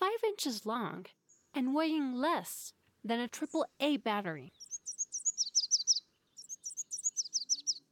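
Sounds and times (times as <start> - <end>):
speech: 0.4 - 4.6
red warbler song: 3.3 - 7.9.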